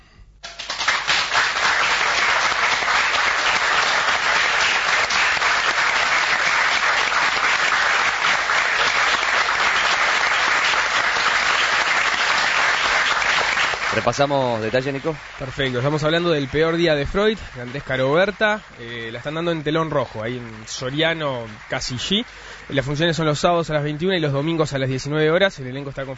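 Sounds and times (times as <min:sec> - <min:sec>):
enthusiastic theatre audience applause: 0:00.4 - 0:24.8
speech: 0:14.0 - 0:26.1.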